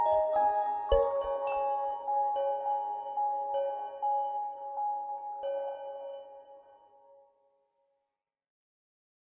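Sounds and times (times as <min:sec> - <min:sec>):
dreamy ringtone on an LG K92 5G phone: 0:00.0 - 0:06.6.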